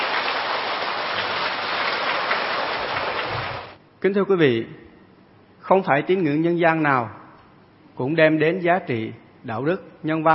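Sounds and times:
audience applause: 0.0s - 3.8s
speech: 4.0s - 4.8s, 5.7s - 7.2s, 8.0s - 10.3s.

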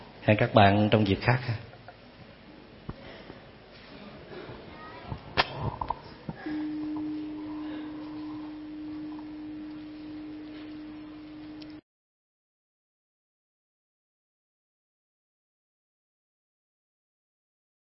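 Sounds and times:
speech: 0.2s - 1.7s
meditation bell ringing: 6.4s - 11.8s.

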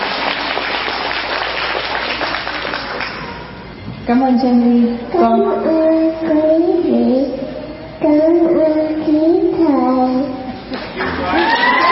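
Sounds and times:
crowd applauding: 0.0s - 3.6s, 11.0s - 11.9s
speech: 4.1s - 7.4s, 8.0s - 10.3s.

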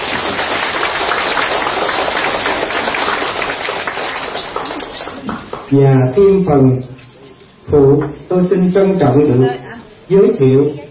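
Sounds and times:
crowd clapping: 0.0s - 5.8s
speech: 5.7s - 6.9s, 7.7s - 10.8s.

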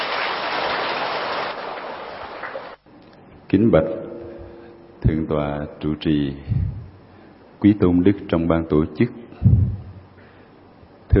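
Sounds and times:
applause: 0.0s - 2.8s
speech: 3.5s - 4.1s, 5.0s - 6.8s, 7.6s - 9.6s.

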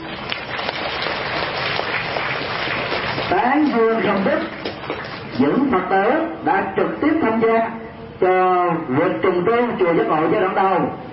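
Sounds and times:
applause from Buddhist followers at a temple gathering: 0.0s - 5.4s
speech: 3.3s - 11.1s.

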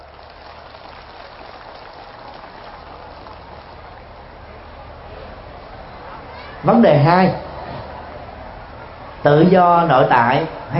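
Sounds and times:
audience applause: 0.0s - 4.4s
speech: 6.6s - 7.5s, 9.2s - 10.7s.

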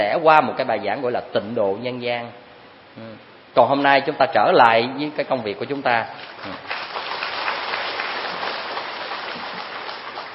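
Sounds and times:
speech: 0.2s - 2.4s, 3.0s - 6.8s
audience applause at a Buddhist lecture: 6.4s - 10.3s.

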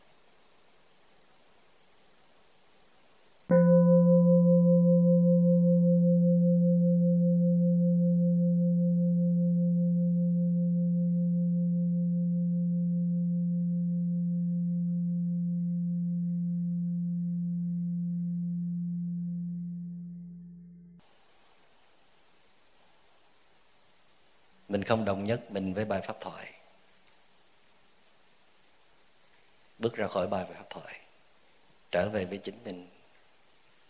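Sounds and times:
meditation bell ringing: 3.5s - 20.6s
speech: 24.8s - 26.6s, 29.8s - 31.0s, 31.9s - 33.0s.

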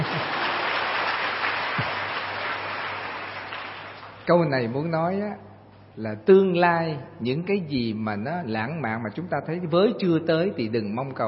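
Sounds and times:
audience applause: 0.0s - 4.2s
speech: 4.3s - 11.2s.

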